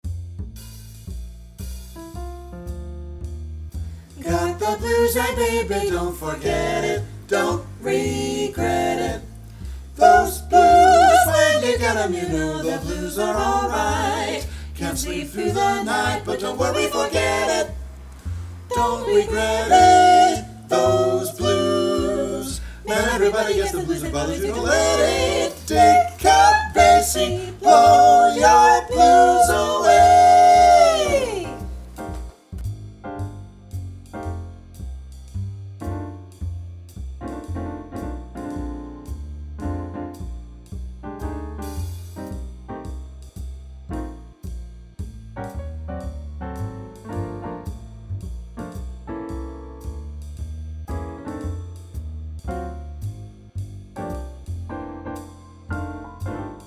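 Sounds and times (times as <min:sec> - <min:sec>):
vocal blues etude in F: 0:04.2 - 0:17.9, 0:18.7 - 0:31.8.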